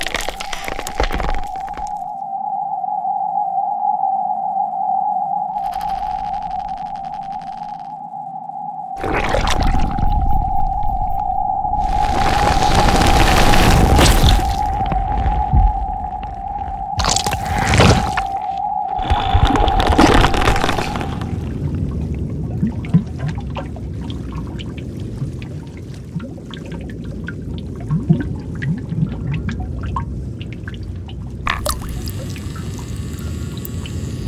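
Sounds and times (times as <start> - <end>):
alien planet ambience: 0.0 - 34.2
alien planet sound effects: 5.5 - 8.1, 9.0 - 21.5.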